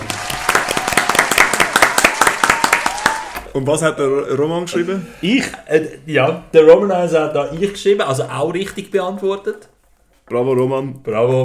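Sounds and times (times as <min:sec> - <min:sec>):
audience applause: 0:00.0 - 0:03.5
speech: 0:03.6 - 0:09.7, 0:10.3 - 0:11.4.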